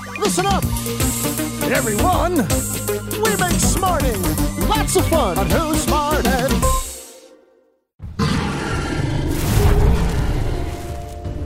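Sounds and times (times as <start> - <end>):
speech: 0.2 - 6.7
dragon roar from How to Train Your Dragon on TV: 8.0 - 11.2.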